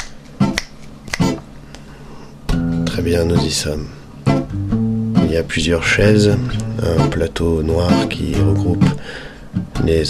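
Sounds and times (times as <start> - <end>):
finger snaps: 0.0 - 1.8
speech: 3.0 - 4.6, 5.3 - 10.0.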